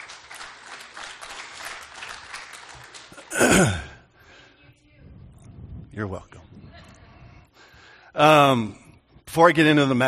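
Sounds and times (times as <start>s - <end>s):
audience clapping: 0.0s - 3.6s
speech: 3.4s - 3.8s, 8.2s - 8.8s, 9.4s - 10.0s.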